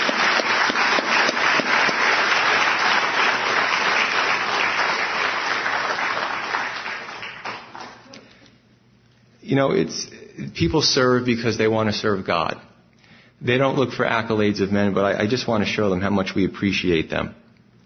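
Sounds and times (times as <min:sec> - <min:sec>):
audience applause: 0:00.0 - 0:08.2
speech: 0:09.5 - 0:12.7, 0:13.4 - 0:17.4.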